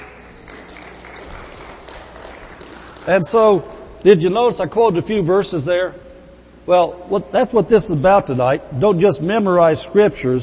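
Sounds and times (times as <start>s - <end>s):
crowd audience applauding: 0.0s - 4.0s
speech: 3.1s - 6.0s, 6.6s - 10.4s.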